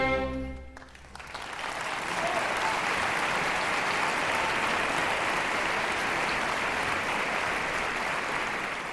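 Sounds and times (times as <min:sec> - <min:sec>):
live opera audience applause after an aria: 0:00.2 - 0:08.9.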